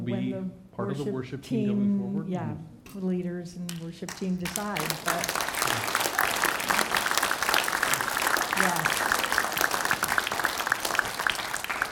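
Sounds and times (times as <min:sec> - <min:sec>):
speech: 0:00.1 - 0:06.0
audience applauding: 0:04.1 - 0:11.9.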